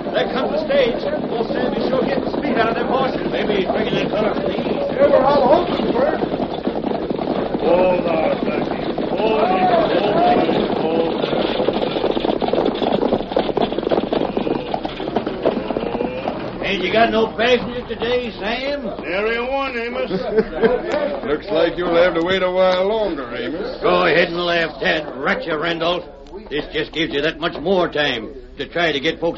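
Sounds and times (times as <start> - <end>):
hoofbeats of horses drawing a stagecoach: 0.0 - 29.3
stagecoach rolling noise: 0.0 - 29.3
speech: 0.2 - 6.3, 16.7 - 29.3
laughter: 14.2 - 22.3.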